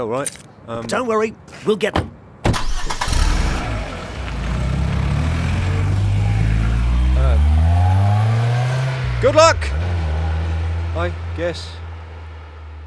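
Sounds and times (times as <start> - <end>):
speech: 0.0 - 2.2, 9.2 - 9.8, 11.0 - 11.8
car engine starting and revving away: 2.5 - 12.8.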